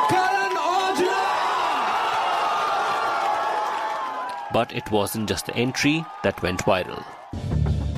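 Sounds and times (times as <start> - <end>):
studio audience cheering: 0.0 - 7.8
speech: 4.5 - 7.5.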